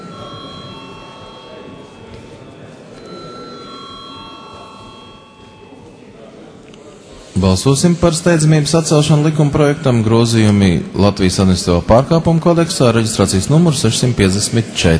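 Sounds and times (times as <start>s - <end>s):
electric bell ringing in the Latvian parliament before a vote: 0.0s - 11.0s
faint murmur: 0.0s - 14.9s
speech: 7.4s - 14.9s.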